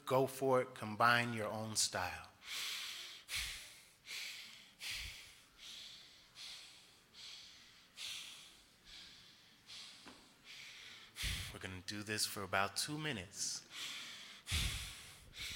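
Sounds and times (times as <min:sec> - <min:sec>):
speech: 0:00.1 - 0:03.4, 0:11.8 - 0:14.7
fast rhythmic breathing through nose and mouth during a psychedelic breathwork session: 0:02.3 - 0:11.8, 0:13.4 - 0:15.5.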